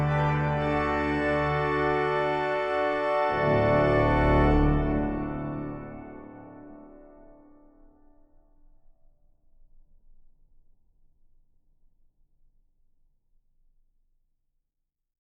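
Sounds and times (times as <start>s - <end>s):
organist playing a piece in D major: 0.0s - 7.2s.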